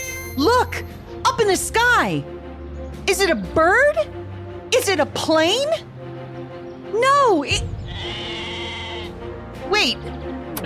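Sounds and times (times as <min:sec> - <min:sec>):
speech: 0:00.4 - 0:02.4, 0:03.1 - 0:05.9, 0:06.9 - 0:08.4, 0:09.7 - 0:10.3
goat bleating: 0:07.9 - 0:09.1.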